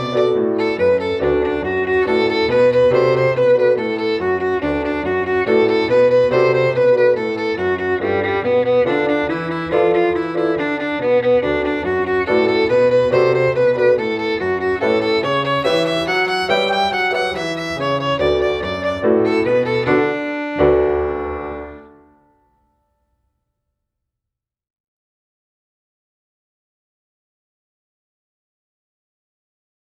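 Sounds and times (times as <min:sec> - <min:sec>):
boogie woogie music: 0:00.0 - 0:22.2.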